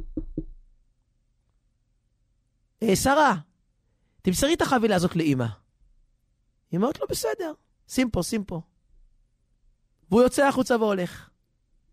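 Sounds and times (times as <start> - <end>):
knocking on a door: 0.0 - 0.6
speech: 2.8 - 3.5, 4.2 - 5.6, 6.7 - 8.7, 10.1 - 11.3.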